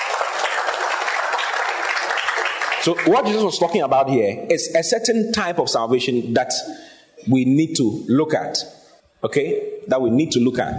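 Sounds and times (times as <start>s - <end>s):
audience applause: 0.0s - 3.4s
speech: 2.8s - 10.7s.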